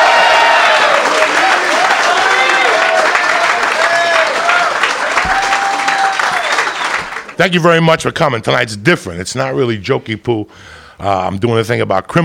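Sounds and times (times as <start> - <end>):
audience applause and cheering: 0.0 - 7.6
speech: 7.4 - 12.2.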